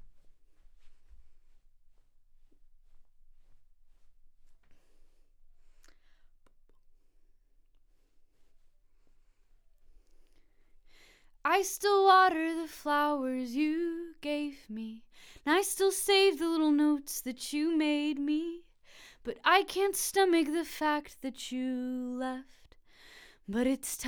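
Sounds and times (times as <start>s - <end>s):
vocals: 11.0s - 24.0s.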